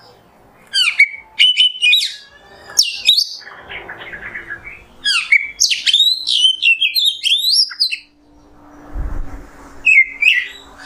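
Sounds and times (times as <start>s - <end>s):
Oriental magpie-robin song: 0.7s - 8.2s, 9.8s - 10.8s.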